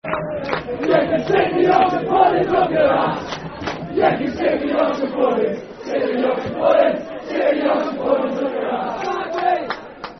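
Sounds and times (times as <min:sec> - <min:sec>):
football crowd chanting: 0:00.0 - 0:10.1.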